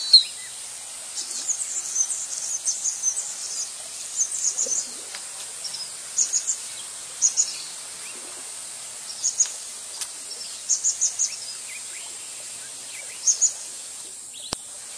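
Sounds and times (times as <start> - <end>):
Anna's hummingbird buzzy high-pitched chatter song: 0.0 - 14.9.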